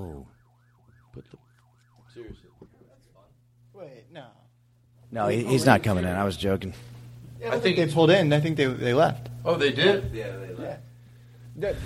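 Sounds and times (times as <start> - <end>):
alarm going off: 0.0 - 3.2
speech: 5.1 - 10.9, 11.6 - 11.8.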